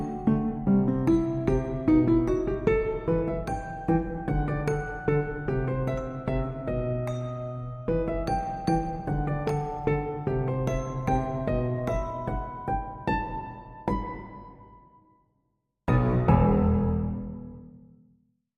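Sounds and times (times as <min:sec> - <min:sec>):
piano: 0:00.0 - 0:15.2, 0:15.9 - 0:18.2
mallet percussion: 0:01.2 - 0:12.9.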